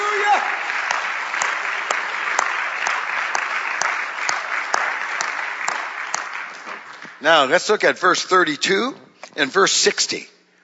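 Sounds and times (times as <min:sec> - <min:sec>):
audience clapping hands: 0:00.0 - 0:07.5
speech: 0:07.2 - 0:10.3.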